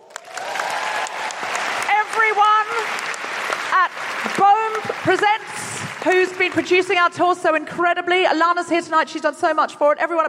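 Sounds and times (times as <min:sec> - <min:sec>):
audience applause at Hamer Hall: 0:00.0 - 0:07.0
speech: 0:06.0 - 0:10.2.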